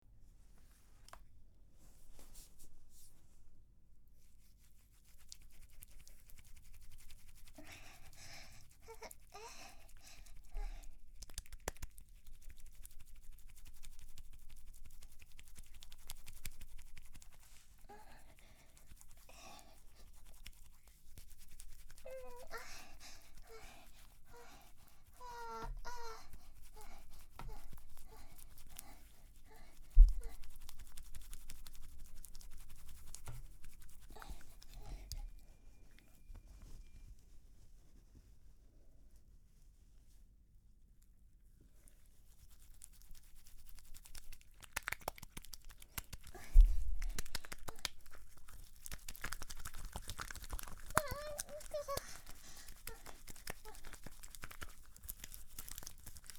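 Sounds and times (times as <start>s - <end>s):
wet squishing sounds: 5.2s - 35.4s, 42.6s - 56.3s.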